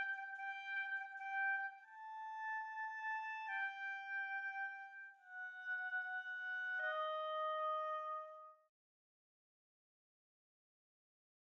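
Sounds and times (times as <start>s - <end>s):
oboe: 0.0s - 8.6s.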